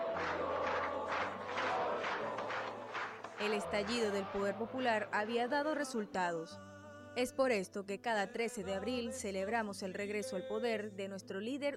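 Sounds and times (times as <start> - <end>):
crowd shouting and cheering: 0.0 - 5.3
speech: 3.4 - 11.7.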